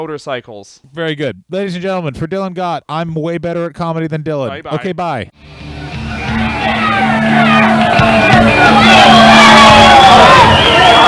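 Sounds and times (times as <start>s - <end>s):
speech: 0.0s - 7.7s
large crowd cheering: 5.4s - 11.0s.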